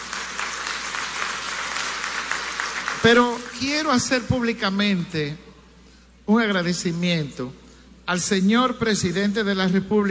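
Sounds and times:
crowd applause: 0:00.0 - 0:03.6
speech: 0:03.0 - 0:05.4, 0:06.3 - 0:10.0.

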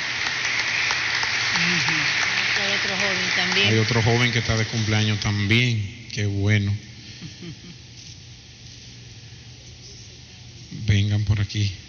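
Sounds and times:
audience applause for a birthday: 0:00.0 - 0:05.5
speech: 0:02.8 - 0:07.8, 0:10.7 - 0:11.8.

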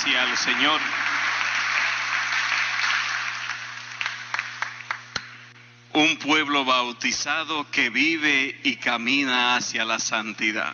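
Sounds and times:
audience applause: 0:00.0 - 0:05.2
speech: 0:00.1 - 0:01.0, 0:06.0 - 0:10.7.

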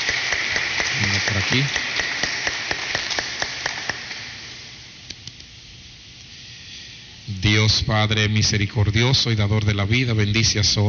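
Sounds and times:
crowd applauding: 0:00.0 - 0:04.4
speech: 0:01.3 - 0:01.8, 0:07.6 - 0:10.8.

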